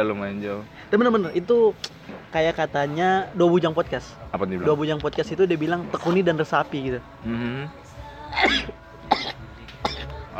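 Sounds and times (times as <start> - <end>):
speech: 0.0 - 8.8
person sneezing: 8.4 - 10.1.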